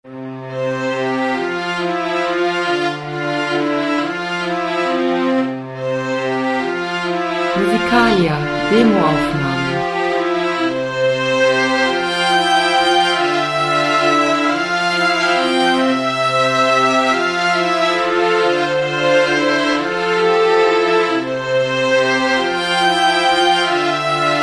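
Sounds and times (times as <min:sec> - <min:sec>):
string trio playing: 0:00.8 - 0:24.4.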